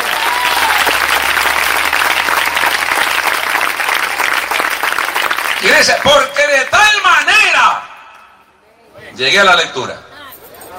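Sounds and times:
audience applause: 0.0 - 7.0
speech: 5.8 - 7.8, 9.2 - 10.0.

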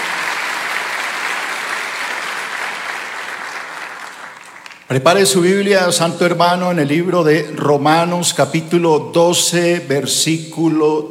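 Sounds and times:
large crowd clapping: 0.0 - 5.1
speech: 4.9 - 11.1.

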